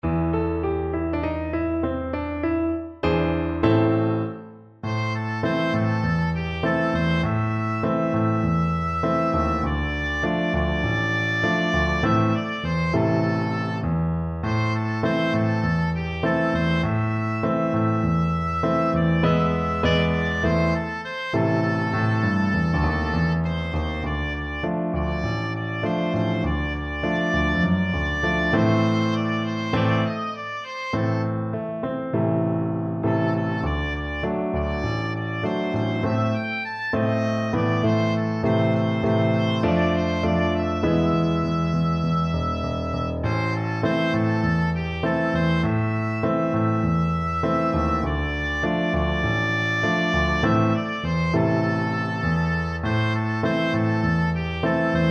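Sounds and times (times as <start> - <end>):
oboe: 0.1 - 32.4, 33.0 - 55.1.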